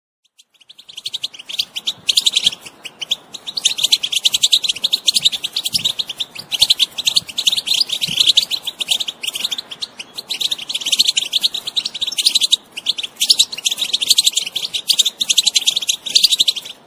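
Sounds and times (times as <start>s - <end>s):
wild European goldfinch song of twittering chirps and trills: 0.2s - 16.8s.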